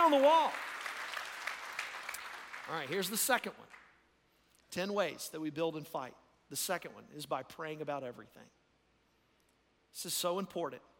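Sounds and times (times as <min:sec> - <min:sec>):
audience clapping hands: 0:00.0 - 0:04.0
speech: 0:00.1 - 0:00.7, 0:02.7 - 0:03.8, 0:04.7 - 0:08.6, 0:09.9 - 0:10.9.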